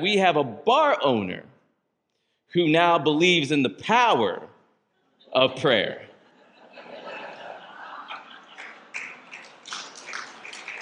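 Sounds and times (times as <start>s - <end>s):
speech: 0.0s - 1.5s, 2.5s - 4.5s, 5.3s - 6.1s
laughter: 6.1s - 10.8s
hand clapping: 8.1s - 10.8s.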